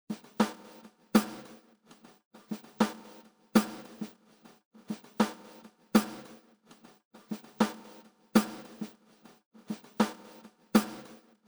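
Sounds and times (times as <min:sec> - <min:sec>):
Wave Drum snare drum: 0:00.2 - 0:01.4, 0:02.8 - 0:04.1, 0:06.0 - 0:06.2, 0:08.4 - 0:08.9, 0:09.7 - 0:11.1.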